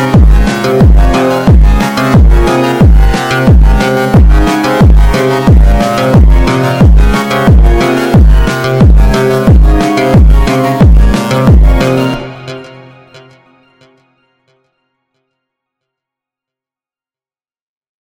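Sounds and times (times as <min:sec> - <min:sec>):
phonk funk music: 0:00.0 - 0:14.2.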